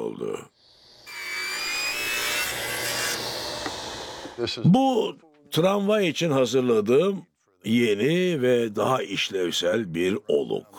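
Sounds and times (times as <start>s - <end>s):
speech: 0.2s - 0.8s, 4.4s - 10.7s
saw cutting through plywood: 0.9s - 4.4s.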